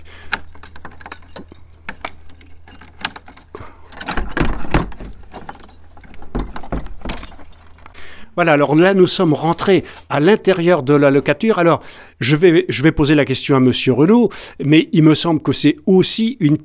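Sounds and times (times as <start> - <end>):
door bolt clunking: 0.0 - 11.0
keys unlocking a security door lock: 0.0 - 11.1
speech: 8.4 - 16.6.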